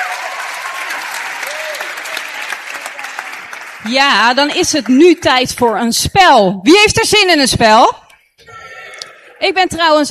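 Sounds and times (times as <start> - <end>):
large crowd applause for the band: 0.0 - 5.3
speech: 3.8 - 8.0, 9.4 - 10.1.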